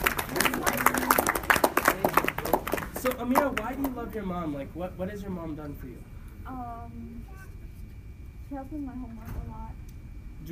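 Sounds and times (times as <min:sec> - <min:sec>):
scattered audience hand claps for a child: 0:00.0 - 0:04.2
speech: 0:03.0 - 0:07.5, 0:08.5 - 0:09.8.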